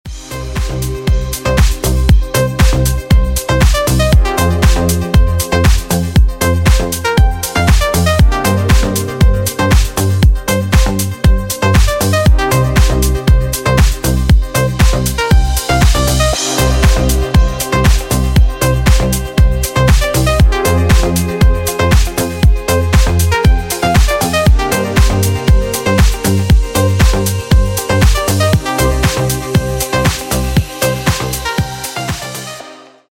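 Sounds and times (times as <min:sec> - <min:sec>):
deep house music: 0:00.1 - 0:33.1.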